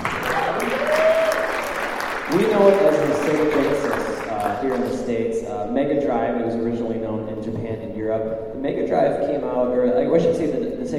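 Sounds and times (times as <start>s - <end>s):
group clapping: 0.0s - 5.0s
speech: 2.3s - 10.9s.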